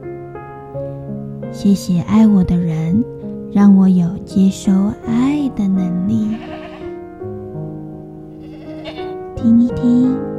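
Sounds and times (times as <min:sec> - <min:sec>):
speech: 0:01.5 - 0:06.6, 0:09.4 - 0:10.3
sheep bleating: 0:06.2 - 0:07.0, 0:08.3 - 0:09.2.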